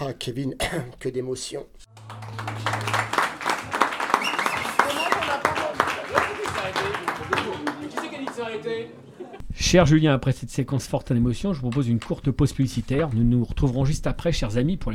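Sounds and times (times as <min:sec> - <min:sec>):
speech: 0:00.1 - 0:02.3, 0:07.3 - 0:14.9
audience applause: 0:01.9 - 0:08.8
crowd voices: 0:02.0 - 0:09.4.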